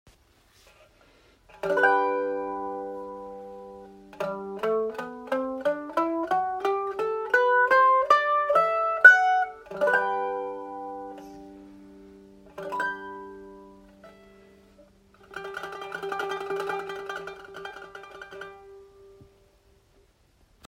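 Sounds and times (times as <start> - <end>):
mandolin: 0.6 - 20.6.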